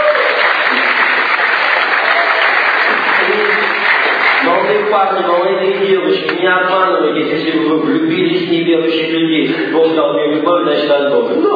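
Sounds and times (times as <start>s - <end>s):
audience applause: 0.0s - 5.8s
speech: 4.9s - 5.5s, 6.1s - 11.5s.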